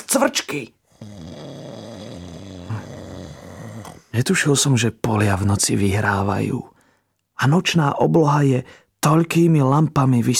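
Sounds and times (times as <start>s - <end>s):
speech: 0.1s - 1.2s, 4.2s - 6.7s, 7.4s - 10.3s
loud snoring: 0.8s - 4.2s.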